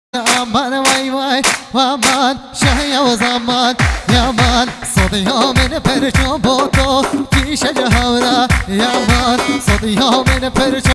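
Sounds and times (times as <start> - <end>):
Kurdish halay music: 0.2 - 10.9.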